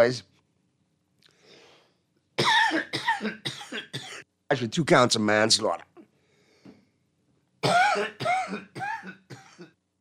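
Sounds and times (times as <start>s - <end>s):
speech: 0.0s - 0.3s, 4.5s - 5.9s, 7.6s - 8.6s
coughing fit with choking: 2.4s - 4.2s, 7.6s - 9.8s.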